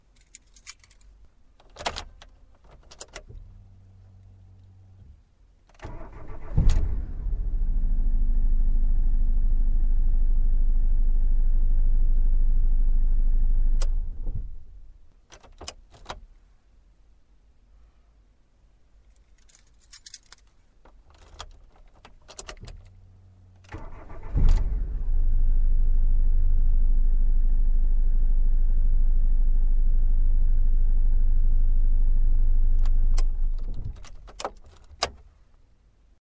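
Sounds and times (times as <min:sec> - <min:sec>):
car starting from inside: 0:05.8 - 0:15.0, 0:22.3 - 0:34.8.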